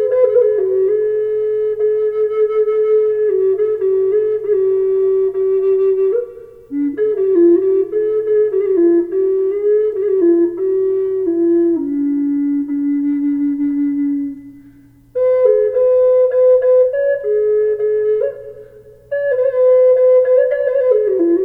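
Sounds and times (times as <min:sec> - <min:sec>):
low D flute with reverb: 0:00.0 - 0:21.4.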